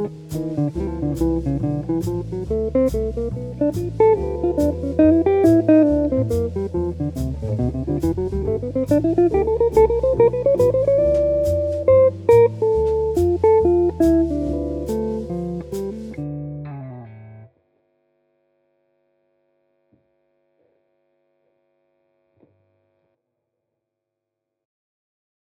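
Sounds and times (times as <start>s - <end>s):
solo guitar: 0.0s - 17.6s.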